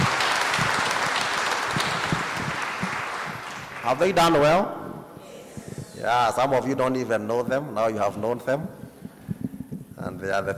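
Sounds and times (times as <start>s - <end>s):
crowd clapping: 0.0s - 4.4s
speech: 3.9s - 4.8s, 6.0s - 8.8s, 10.2s - 10.5s.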